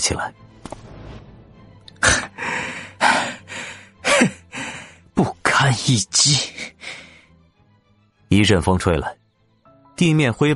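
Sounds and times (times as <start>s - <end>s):
speech: 0.0s - 0.4s, 5.2s - 6.5s, 8.3s - 9.2s, 10.0s - 10.5s
heavy panting breaths: 2.2s - 5.0s.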